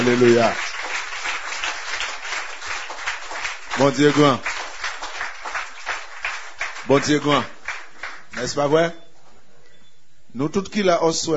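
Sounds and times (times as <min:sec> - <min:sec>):
speech: 0:00.0 - 0:00.7, 0:03.8 - 0:04.5, 0:06.9 - 0:07.6, 0:08.4 - 0:09.0, 0:10.3 - 0:11.3
crowd applauding: 0:00.0 - 0:08.8.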